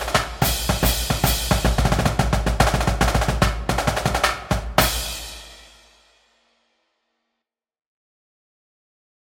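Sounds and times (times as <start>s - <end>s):
drumline drumming: 0.0s - 5.3s.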